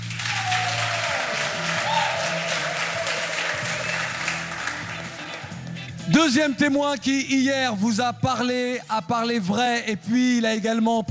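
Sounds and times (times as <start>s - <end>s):
audience applause greeting a guest called to the stage: 0.0s - 6.1s
speech: 6.1s - 11.0s.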